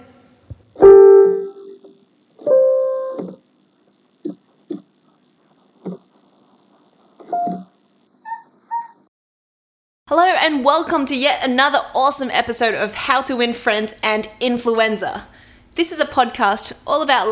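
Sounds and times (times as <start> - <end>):
cat playing piano keys: 0.8 - 1.8, 2.4 - 3.4
speech: 10.4 - 17.2.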